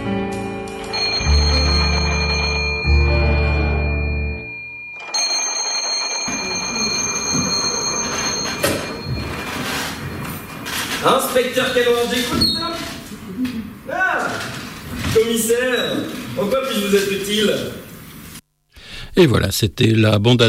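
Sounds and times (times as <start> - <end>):
telephone ringing: 0.8 - 12.2
hiss: 9.3 - 20.4
speech: 11.0 - 12.8, 15.1 - 17.8, 19.2 - 20.4.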